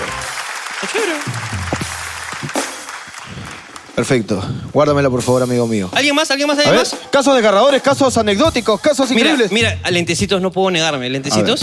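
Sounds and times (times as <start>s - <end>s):
audience applause: 0.0s - 4.3s
speech: 0.8s - 1.5s, 4.0s - 11.6s.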